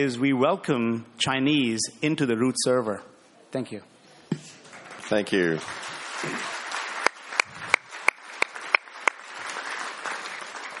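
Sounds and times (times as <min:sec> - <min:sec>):
speech: 0:00.0 - 0:04.5, 0:05.1 - 0:06.6
audience applause: 0:04.7 - 0:10.7.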